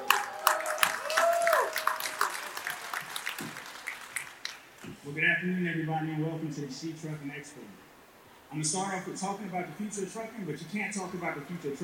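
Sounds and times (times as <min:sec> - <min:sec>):
audience applause for a speaker at the She Trucking Expo: 0:00.0 - 0:04.8
speech: 0:05.1 - 0:07.9, 0:08.5 - 0:11.8.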